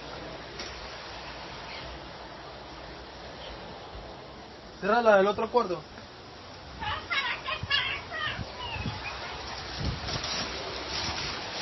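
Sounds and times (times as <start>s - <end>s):
heavy rain: 0.0s - 11.5s
speech: 4.8s - 6.0s.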